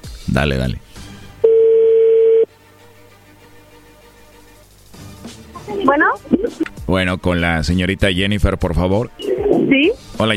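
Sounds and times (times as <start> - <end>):
speech: 0.3 - 1.0, 5.9 - 10.3
telephone call ring tone: 1.4 - 2.5.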